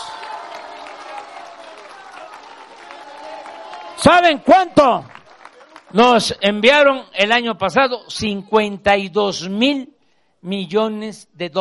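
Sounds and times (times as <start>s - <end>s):
large crowd applauding: 0.0s - 6.4s
speech: 4.0s - 5.2s, 5.9s - 11.5s.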